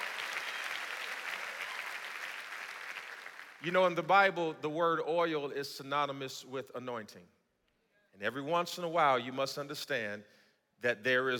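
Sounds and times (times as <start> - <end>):
audience clapping hands: 0.0 - 3.6
speech: 3.6 - 7.4, 8.2 - 11.3.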